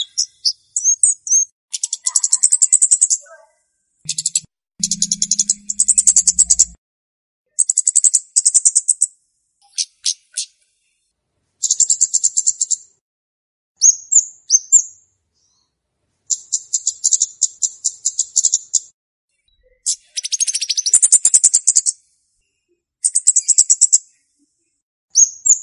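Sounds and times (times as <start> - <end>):
flowerpecker song of high rapid ticks used as a lure: 0.0 - 3.3, 4.1 - 6.8, 7.5 - 10.7, 11.6 - 13.0, 13.8 - 22.2, 23.0 - 24.3.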